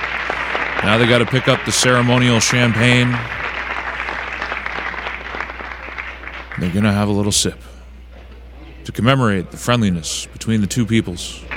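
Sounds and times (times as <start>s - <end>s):
people applauding at the Nixon–Brezhnev ceremony: 0.0s - 7.3s
speech: 0.8s - 3.4s, 6.6s - 7.7s, 8.8s - 11.5s.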